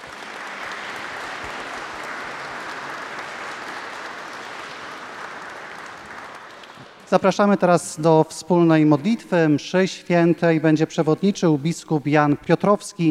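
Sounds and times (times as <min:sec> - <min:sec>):
large crowd applauding: 0:00.0 - 0:07.6
speech: 0:07.1 - 0:13.0.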